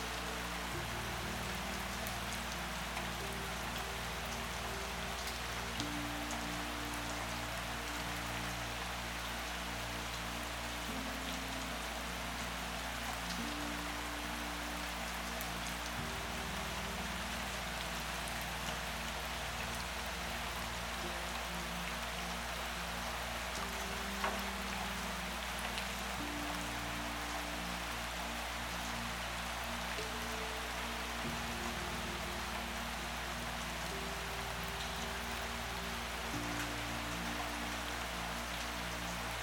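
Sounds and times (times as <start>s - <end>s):
heavy rain: 0.0s - 39.4s
soft low melody of sustained tones: 0.0s - 39.4s.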